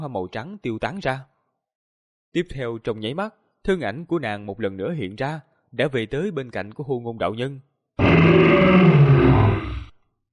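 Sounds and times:
speech: 0:00.0 - 0:01.3, 0:02.3 - 0:09.2
dragon roar sound effect: 0:08.0 - 0:10.0.

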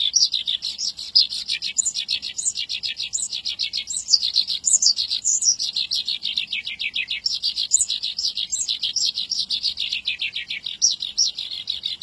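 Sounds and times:
Javan bushlark singing: 0:00.0 - 0:12.0.

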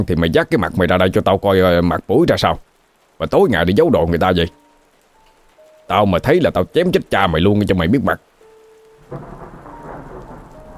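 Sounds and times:
speech: 0:00.0 - 0:04.6, 0:05.9 - 0:08.3, 0:09.1 - 0:09.4
heavy rain pouring down in a storm: 0:00.0 - 0:10.7
low rumble of thunder: 0:09.0 - 0:10.7.

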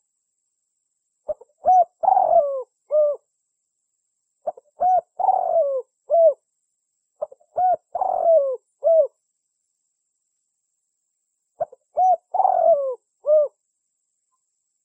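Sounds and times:
Spotted Dove cooing as a lure call: 0:01.3 - 0:03.2, 0:04.4 - 0:06.4, 0:07.2 - 0:09.2, 0:11.6 - 0:13.6.

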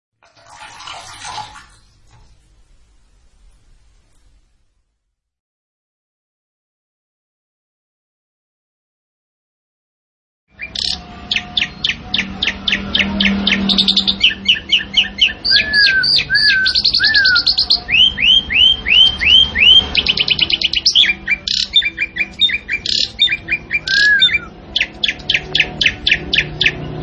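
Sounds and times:
Asian pied starling singing with rattling trills and chips: 0:10.6 - 0:27.0.

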